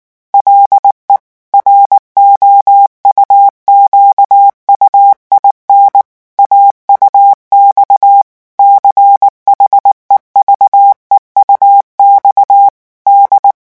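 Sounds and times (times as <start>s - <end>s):
morse code at 18 words per minute: 0.4s - 13.5s.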